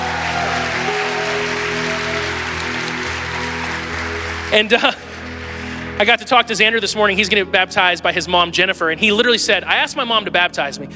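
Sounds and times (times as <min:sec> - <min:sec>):
audience applause welcoming a nine-year-old boy at his baptism service: 0:00.0 - 0:06.3
speech: 0:04.5 - 0:05.1, 0:06.0 - 0:10.9.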